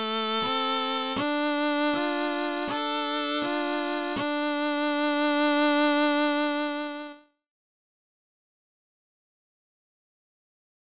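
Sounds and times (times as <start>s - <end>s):
violin playing: 0.0s - 7.2s.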